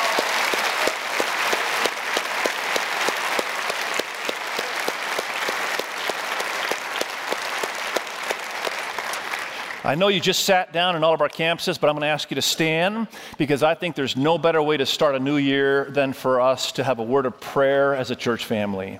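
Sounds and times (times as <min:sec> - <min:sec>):
audience applause: 0:00.0 - 0:10.1
speech: 0:09.9 - 0:18.9.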